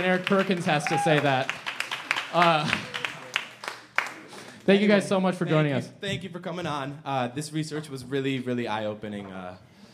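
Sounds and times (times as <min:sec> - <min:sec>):
speech: 0:00.0 - 0:01.6, 0:02.3 - 0:02.9, 0:04.7 - 0:09.7
scattered hand claps from a small group: 0:00.0 - 0:04.6.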